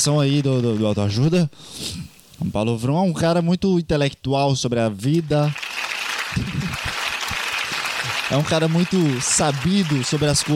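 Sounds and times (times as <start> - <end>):
speech: 0.0 - 5.6, 6.3 - 6.8, 8.3 - 10.5
audience applause: 5.3 - 10.5.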